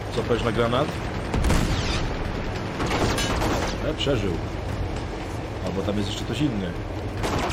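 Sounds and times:
speech: 0.2 - 1.1, 3.9 - 4.6, 5.6 - 7.0
cannon firing in a video game: 1.3 - 3.9, 7.2 - 7.5.

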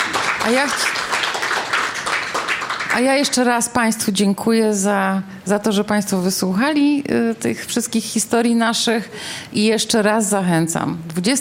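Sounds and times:
loud applause thanking a journalist: 0.0 - 3.0
speech: 0.4 - 1.0, 2.9 - 11.4.

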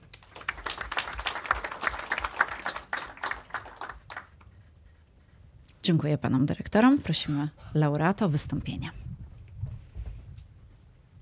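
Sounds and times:
audience applause: 0.0 - 4.4
speech: 5.8 - 9.0.

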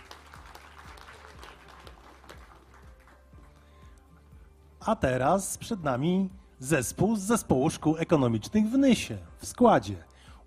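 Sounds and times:
audience applause: 0.0 - 3.6
speech: 4.8 - 10.1.

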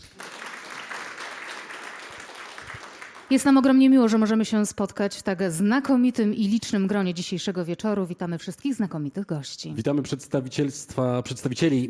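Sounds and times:
audience applause at a gala: 0.0 - 3.6
speech: 3.3 - 11.8.

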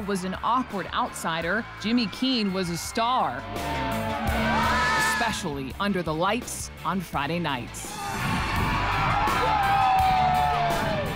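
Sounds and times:
stadium crowd roaring and cheering: 0.0 - 5.5, 7.9 - 11.1
speech: 0.0 - 8.3.

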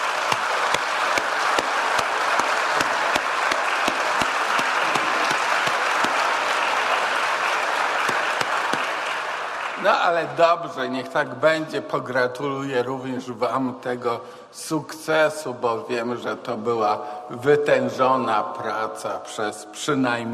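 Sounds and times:
audience applause: 0.0 - 10.4
speech: 10.1 - 20.3.

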